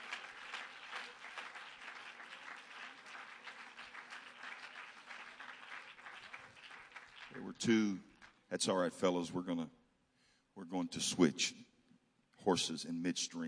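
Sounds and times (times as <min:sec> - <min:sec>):
audience clapping hands: 0:00.0 - 0:08.6
speech: 0:07.4 - 0:09.8, 0:10.6 - 0:11.7, 0:12.4 - 0:13.4.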